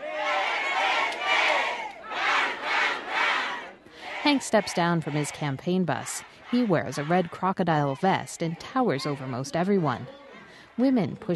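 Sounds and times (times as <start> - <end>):
large crowd of supporters cheering and shouting: 0.0 - 11.2
speech: 4.2 - 10.2, 10.8 - 11.3.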